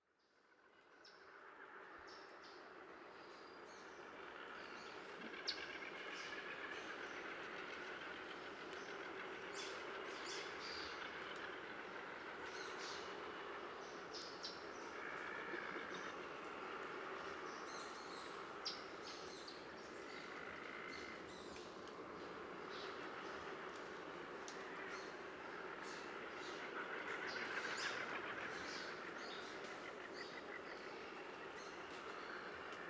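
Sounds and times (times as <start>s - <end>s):
daytime soundscape at Chatham on Isla del Coco: 0.0s - 32.8s.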